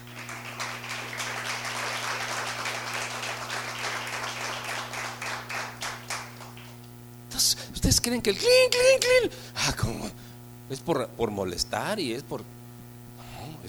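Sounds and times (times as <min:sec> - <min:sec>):
audience applause: 0:00.0 - 0:06.7
speech: 0:07.8 - 0:12.6.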